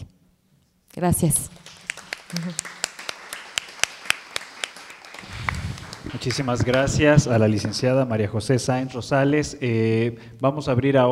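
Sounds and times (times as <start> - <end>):
speech: 1.0 - 1.6, 2.3 - 2.7, 6.1 - 11.0
applause: 1.4 - 8.0.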